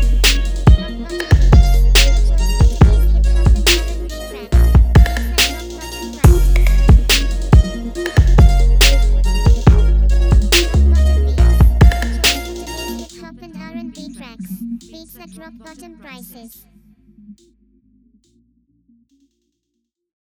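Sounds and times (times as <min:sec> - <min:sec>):
music beat: 0:00.0 - 0:13.3.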